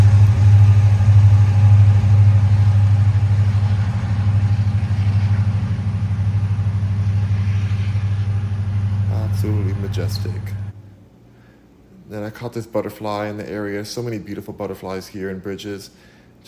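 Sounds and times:
train passing through: 0.0s - 10.8s
speech: 10.0s - 10.6s, 12.1s - 16.4s.

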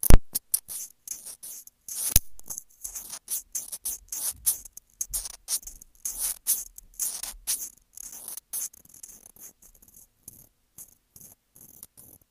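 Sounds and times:
scratching against a sensitive microphone: 0.0s - 9.7s.

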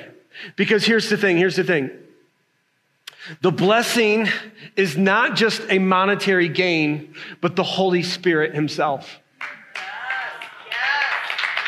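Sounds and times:
speech: 0.4s - 2.0s, 3.2s - 9.6s
scattered audience clapping: 9.3s - 11.6s
cheering voices: 9.4s - 11.6s.

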